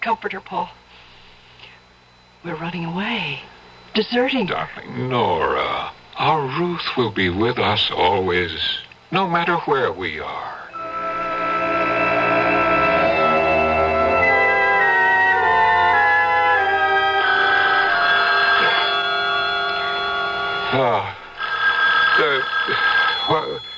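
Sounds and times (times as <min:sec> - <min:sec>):
speech: 0:00.0 - 0:00.8, 0:02.4 - 0:10.6, 0:20.7 - 0:21.2, 0:22.2 - 0:23.6
telephone ringing: 0:10.7 - 0:23.7.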